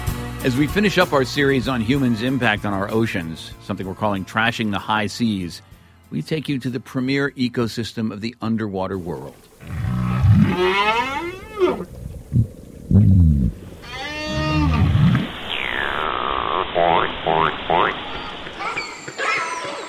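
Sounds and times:
speech: 0.4s - 9.9s, 10.6s - 11.1s
underwater whale song: 9.6s - 19.8s.

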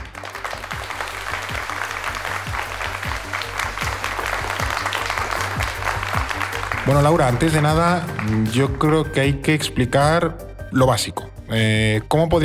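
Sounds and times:
live audience applause: 0.0s - 9.0s
speech: 6.9s - 12.4s.

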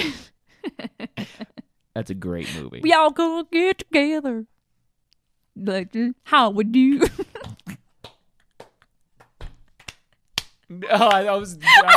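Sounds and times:
speech: 2.0s - 4.5s, 5.6s - 7.4s, 10.8s - 11.9s
one person clapping hands: 7.4s - 11.4s
laughter: 10.9s - 11.9s.

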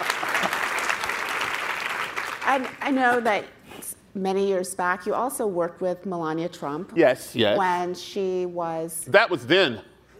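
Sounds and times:
audience applause: 0.0s - 2.9s
speech: 2.5s - 9.9s.

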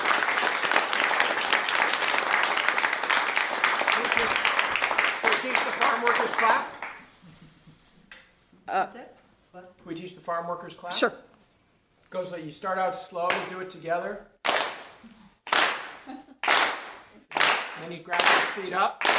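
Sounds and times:
audience applause at a storytelling night: 0.0s - 7.2s, 14.4s - 19.1s
speech: 4.2s - 4.4s, 6.0s - 6.8s, 8.7s - 11.3s, 12.1s - 14.3s, 17.9s - 19.1s.

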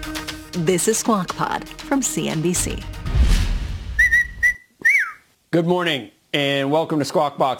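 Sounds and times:
speech: 0.6s - 3.0s, 5.5s - 7.5s
person whistling: 4.0s - 5.2s.

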